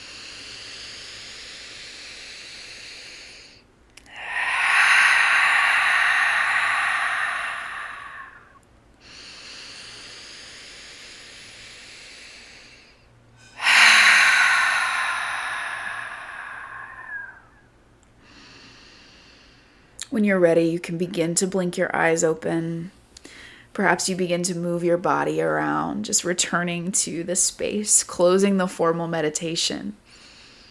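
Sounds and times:
deep breathing through the nose during a guided meditation: 0.0s - 20.0s, 30.0s - 30.6s
speech: 20.2s - 23.0s, 23.8s - 30.1s.

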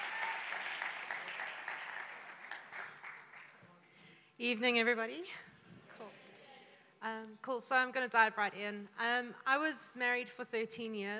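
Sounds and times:
audience applause welcoming a speaker to the stage: 0.0s - 3.7s
speech: 4.4s - 5.5s, 7.0s - 11.1s.

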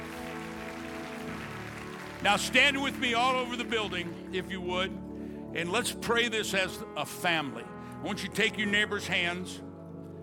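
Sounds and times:
audience clapping: 0.0s - 4.9s
speech: 2.2s - 9.7s.

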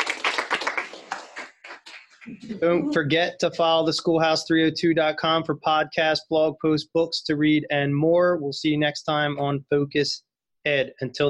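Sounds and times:
studio audience applause: 0.0s - 2.2s
speech: 2.3s - 11.2s.

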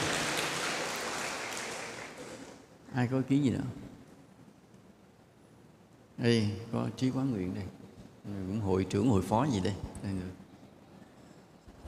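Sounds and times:
audience applause: 0.0s - 2.6s
speech: 2.9s - 3.8s, 6.2s - 10.4s.

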